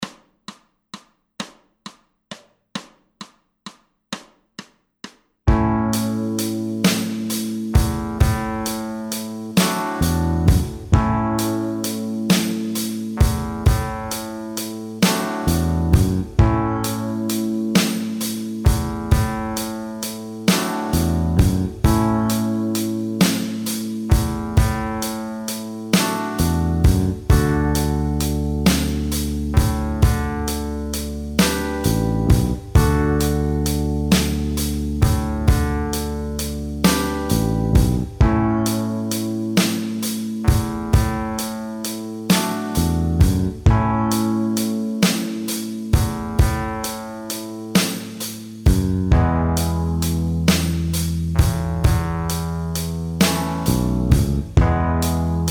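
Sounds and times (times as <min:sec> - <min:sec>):
blues backing track: 0:05.5 - 0:55.4.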